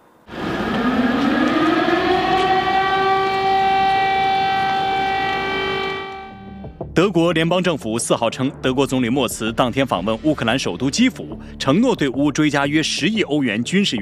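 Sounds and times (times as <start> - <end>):
air raid siren wailing in Kyiv: 0.2 - 6.8
speech: 7.0 - 14.0.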